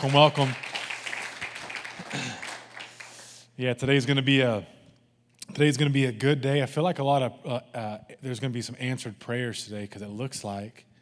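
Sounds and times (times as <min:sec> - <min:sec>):
speech: 0:00.0 - 0:00.6, 0:03.6 - 0:04.8, 0:05.5 - 0:10.9
audience clapping hands: 0:00.0 - 0:03.4.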